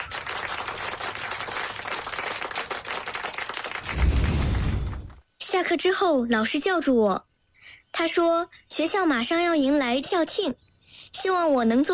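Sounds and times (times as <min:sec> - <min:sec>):
classroom applause: 0:00.0 - 0:05.1
speech: 0:05.6 - 0:07.3, 0:08.0 - 0:11.9.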